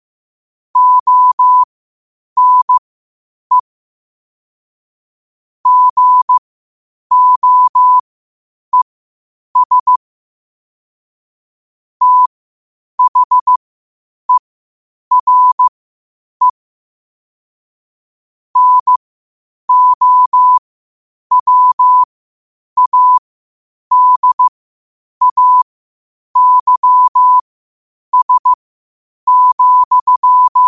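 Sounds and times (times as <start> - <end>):
morse code at 5 wpm: 0.8 - 1.7, 2.4 - 2.8, 5.6 - 6.4, 7.1 - 8.0, 9.6 - 10.0, 12.0 - 12.3, 13.0 - 13.6, 15.1 - 15.7, 18.6 - 19.0, 19.7 - 20.6, 21.3 - 22.1, 22.8 - 23.2, 23.9 - 24.5, 25.2 - 25.6, 26.4 - 27.4, 28.1 - 28.6, 29.3 - 30.6.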